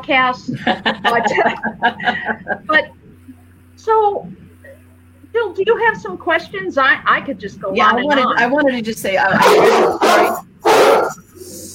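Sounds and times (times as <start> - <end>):
speech: 0.0 - 3.0, 3.8 - 4.4, 5.4 - 10.5
laughter: 0.4 - 2.9
big dog barking: 9.3 - 11.3.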